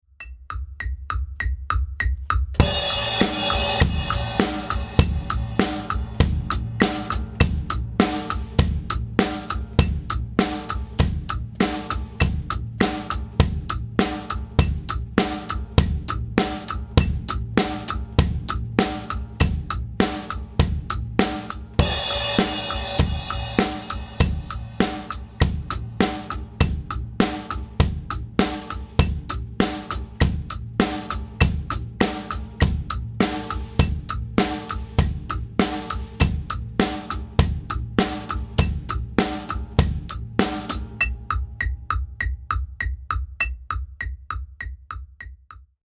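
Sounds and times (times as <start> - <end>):
drum: 0.2 - 45.7.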